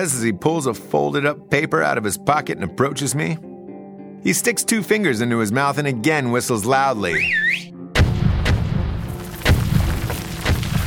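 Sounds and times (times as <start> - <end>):
speech: 0.0 - 3.5, 4.2 - 7.7
dynamite explosions in mine shafts: 8.0 - 10.8.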